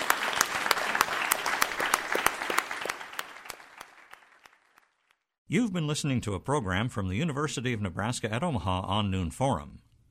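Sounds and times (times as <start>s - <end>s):
audience applause: 0.0s - 5.1s
speech: 5.5s - 9.8s.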